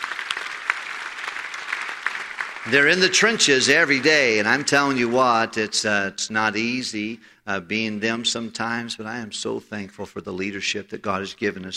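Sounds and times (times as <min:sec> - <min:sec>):
audience applause: 0:00.0 - 0:05.8
speech: 0:02.6 - 0:11.7.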